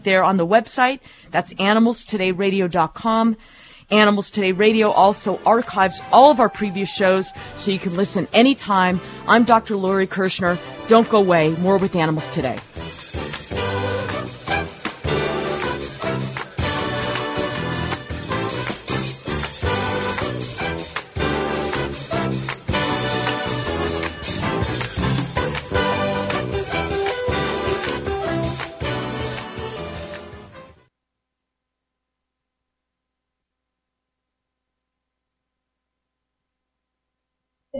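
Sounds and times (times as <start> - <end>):
speech: 0.0 - 13.0
full busy music: 4.3 - 30.6.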